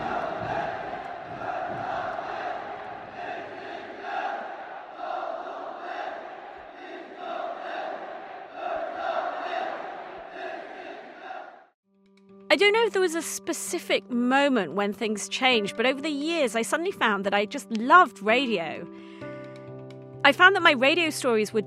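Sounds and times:
large crowd chanting coordinated cheers in unison: 0:00.0 - 0:11.8
speech: 0:12.5 - 0:19.0, 0:20.3 - 0:21.6.

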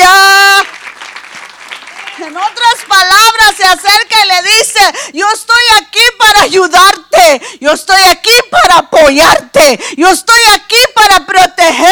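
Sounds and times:
audience applause: 0:00.0 - 0:03.2
speech: 0:03.7 - 0:11.9.

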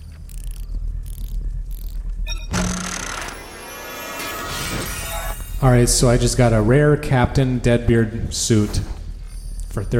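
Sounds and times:
in-game capsule machine dispensing a capsule: 0:02.3 - 0:05.3
speech: 0:05.6 - 0:09.0, 0:09.8 - 0:09.9.

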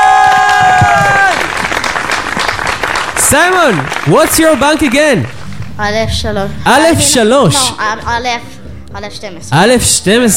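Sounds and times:
audience applause: 0:00.0 - 0:05.6
speech: 0:03.3 - 0:10.3.

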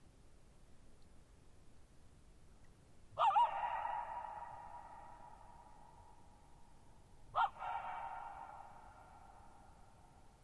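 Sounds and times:
coyote howl: 0:03.2 - 0:06.1, 0:07.3 - 0:09.7.

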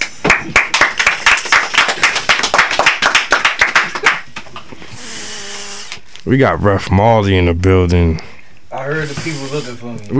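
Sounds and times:
people clapping hands: 0:00.0 - 0:04.7
speech: 0:06.3 - 0:08.3, 0:08.9 - 0:10.1.

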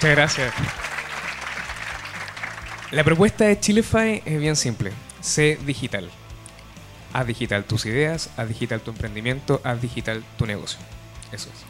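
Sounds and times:
speech: 0:00.0 - 0:00.9, 0:02.9 - 0:06.2, 0:07.1 - 0:11.6
audience applause: 0:00.0 - 0:03.2.

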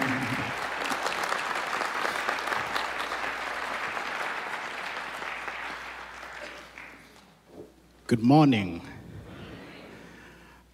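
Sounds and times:
church congregation applause welcoming a guest speaker: 0:00.0 - 0:07.4
speech: 0:08.1 - 0:08.9.

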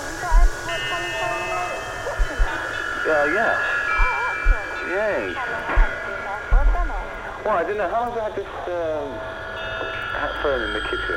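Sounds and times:
washing machine on spin cycle: 0:00.0 - 0:08.4
faint voices murmuring: 0:00.0 - 0:11.1
speech: 0:03.1 - 0:03.7, 0:04.9 - 0:05.8, 0:07.4 - 0:09.4, 0:10.2 - 0:11.1.

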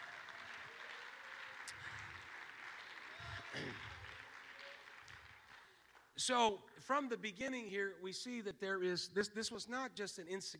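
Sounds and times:
large group clapping hands: 0:00.0 - 0:06.3
speech: 0:03.5 - 0:04.0, 0:06.2 - 0:10.5.

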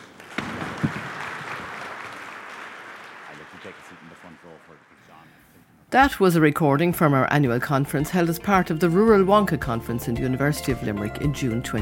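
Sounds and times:
audience applause: 0:00.0 - 0:05.4
speech: 0:05.9 - 0:11.7.

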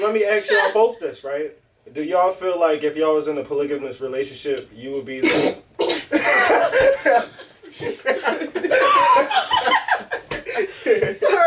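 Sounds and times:
speech: 0:00.0 - 0:05.6, 0:06.3 - 0:10.0, 0:10.9 - 0:11.4
sneeze: 0:05.2 - 0:06.1
laughter: 0:06.1 - 0:11.4.

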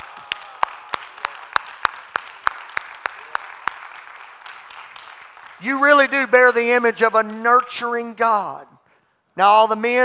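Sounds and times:
audience applause: 0:00.0 - 0:06.1
speech: 0:05.6 - 0:08.7, 0:09.4 - 0:10.0.

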